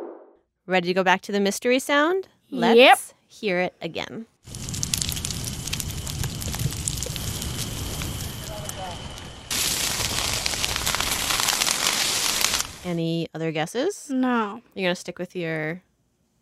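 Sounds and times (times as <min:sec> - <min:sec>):
speech: 0:00.7 - 0:04.6, 0:12.8 - 0:15.9
trees burning in a wild forest fire in California: 0:04.4 - 0:13.0.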